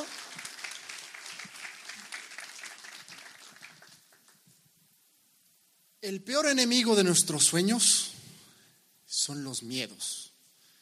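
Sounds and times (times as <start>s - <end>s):
audience applause: 0.0s - 4.4s
speech: 6.0s - 8.2s, 9.2s - 10.3s.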